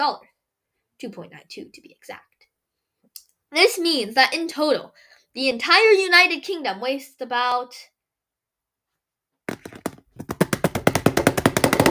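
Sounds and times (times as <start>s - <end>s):
speech: 0.0s - 0.3s, 1.0s - 2.3s, 3.2s - 7.9s
typing on a keyboard: 9.6s - 11.8s.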